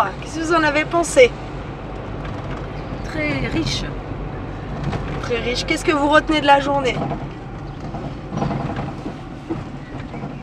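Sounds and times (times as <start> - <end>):
speech: 0.0 - 1.4, 3.1 - 4.0, 4.8 - 7.4, 8.4 - 8.6
road noise inside a moving car: 0.0 - 10.4
light mechanical rattles and clicks in a moving car: 1.9 - 3.6, 6.8 - 10.4.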